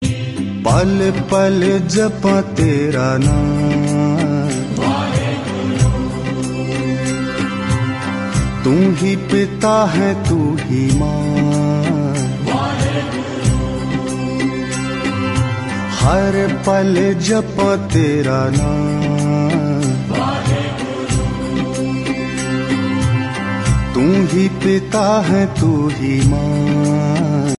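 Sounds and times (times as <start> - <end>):
Punjabi devotional song: 0.0 - 27.5.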